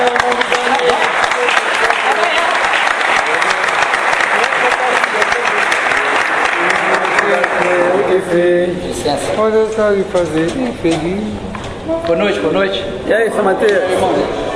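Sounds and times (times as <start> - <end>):
audience applause: 0.0 - 8.2
speech: 8.3 - 14.4.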